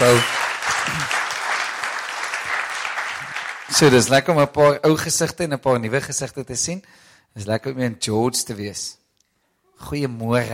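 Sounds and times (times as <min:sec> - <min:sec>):
speech: 0:00.0 - 0:00.4, 0:03.7 - 0:09.0, 0:09.8 - 0:10.5
crowd clapping: 0:00.0 - 0:04.9.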